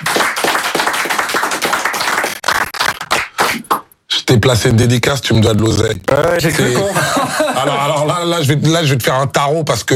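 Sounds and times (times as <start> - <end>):
people clapping: 0.0 - 3.9
speech: 4.3 - 9.9
laughter: 6.4 - 8.2.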